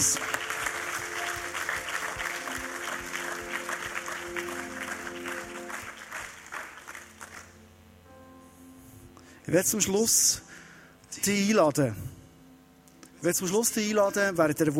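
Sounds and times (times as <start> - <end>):
audience applause: 0.0 - 7.6
speech: 9.5 - 10.5, 11.2 - 12.2, 13.2 - 14.7.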